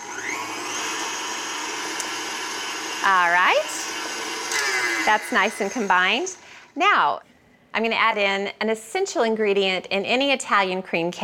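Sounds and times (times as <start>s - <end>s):
electric mixer whipping egg yolks and vanilla: 0.0s - 6.4s
speech: 3.0s - 3.8s, 5.0s - 11.2s.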